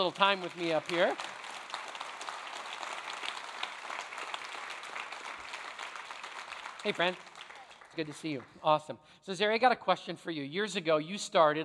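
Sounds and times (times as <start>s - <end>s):
speech: 0.0s - 1.4s, 6.8s - 7.3s, 8.0s - 11.6s
audience applause welcoming a guest to the stage: 0.0s - 8.6s.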